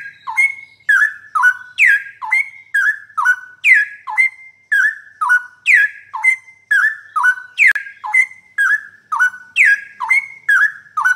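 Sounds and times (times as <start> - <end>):
bird singing whistled notes: 0.0 - 11.1.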